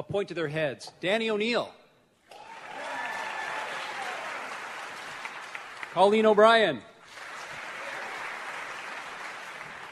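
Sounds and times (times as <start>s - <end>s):
speech: 0.0s - 1.8s, 6.0s - 6.9s
audience applauding: 2.3s - 6.4s, 7.0s - 9.9s.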